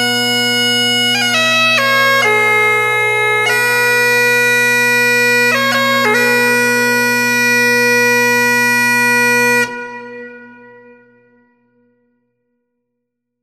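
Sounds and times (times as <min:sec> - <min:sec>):
wedding bagpipe music: 0:00.0 - 0:11.4.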